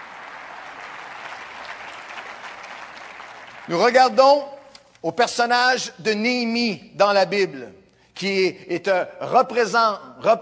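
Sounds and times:
audience applauding: 0.0 - 4.2
speech: 3.7 - 10.4.

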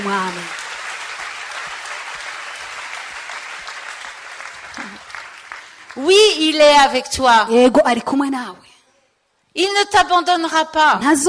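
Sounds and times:
speech: 0.0 - 0.6, 6.0 - 8.7, 9.6 - 11.2
congregation applauding at a church service: 0.0 - 6.5.

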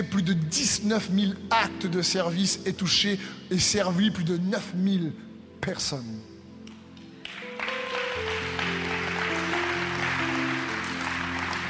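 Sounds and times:
speech: 0.0 - 6.3
audience applause: 7.2 - 11.6.

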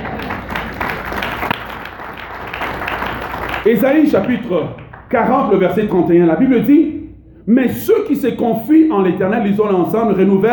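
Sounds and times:
congregation applauding in church: 0.0 - 5.6
speech: 3.6 - 10.5.

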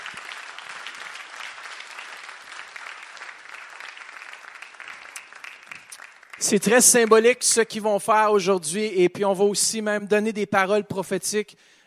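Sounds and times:
audience applause: 0.0 - 7.3
speech: 6.4 - 11.8.

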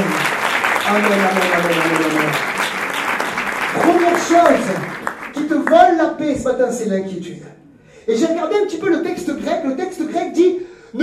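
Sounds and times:
church congregation applauding the word of God: 0.0 - 6.0
speech: 0.9 - 1.8, 5.7 - 11.0.

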